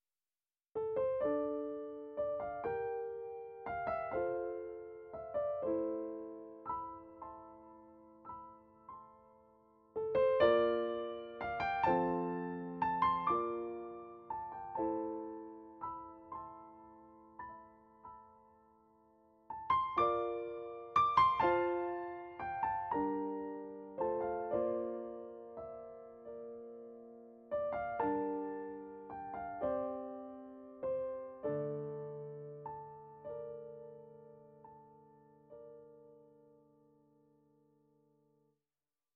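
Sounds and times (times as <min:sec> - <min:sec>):
solo piano: 0:00.7 - 0:38.6.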